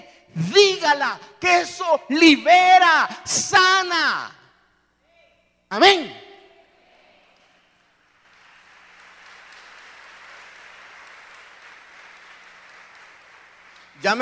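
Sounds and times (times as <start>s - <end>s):
speech: 0.4s - 4.4s, 5.7s - 6.2s, 14.0s - 14.2s
audience applause: 7.7s - 14.2s.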